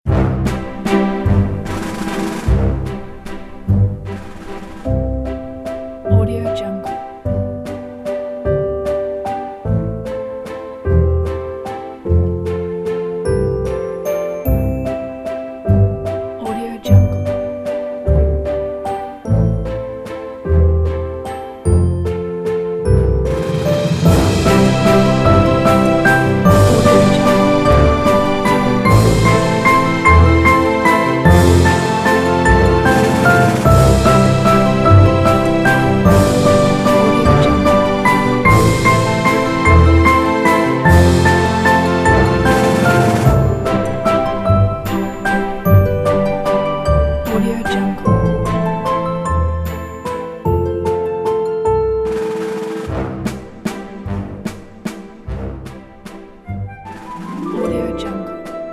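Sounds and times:
classic graceful ballroom waltz music: 0.1s - 58.7s.

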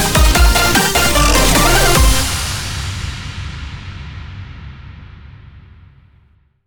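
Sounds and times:
8bit dubstep win logo jingle: 0.1s - 3.1s.

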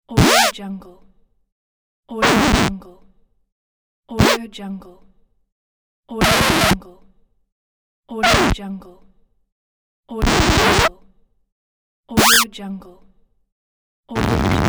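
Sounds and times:
record scratch: 0.2s - 0.5s, 2.2s - 2.7s, 4.2s - 4.4s, 6.2s - 6.8s, 8.2s - 8.6s, 10.2s - 10.9s, 12.2s - 12.5s, 14.2s - 14.6s.

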